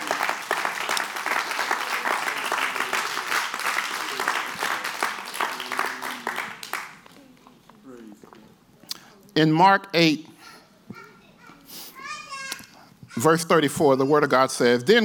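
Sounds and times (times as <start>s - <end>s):
audience clapping: 0.0s - 7.2s
speech: 9.4s - 10.3s, 13.2s - 15.0s.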